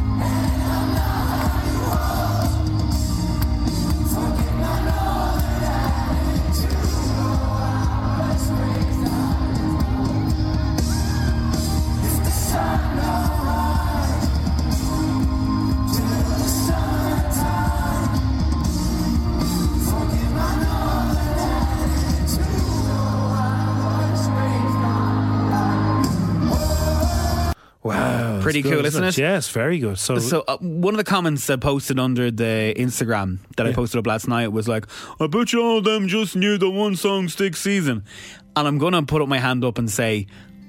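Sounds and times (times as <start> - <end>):
concert crowd cheering: 0.0 - 27.6
speech: 28.6 - 40.5.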